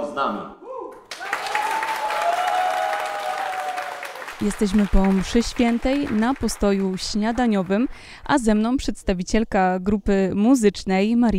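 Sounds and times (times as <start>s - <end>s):
speech: 0.2s - 0.6s, 4.4s - 11.3s
applause: 1.1s - 8.1s.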